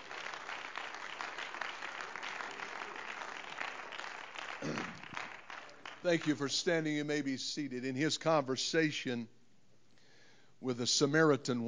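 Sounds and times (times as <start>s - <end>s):
audience clapping hands: 0.0s - 6.6s
speech: 6.0s - 9.4s, 10.6s - 11.6s.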